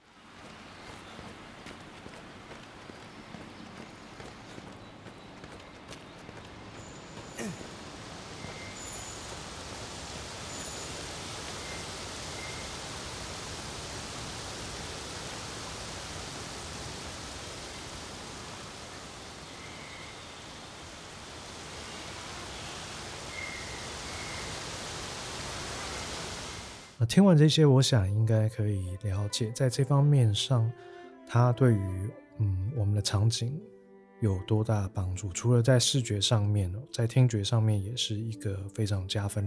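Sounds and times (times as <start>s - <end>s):
video game ambience blending between zones: 0.0s - 26.7s
rhythmic footsteps in video game: 0.4s - 7.8s
speech: 27.0s - 39.4s.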